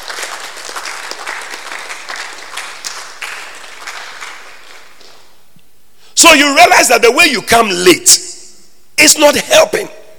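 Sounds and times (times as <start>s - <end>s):
audience clapping hands: 0.0s - 5.4s
speech: 6.2s - 8.2s, 9.0s - 10.0s.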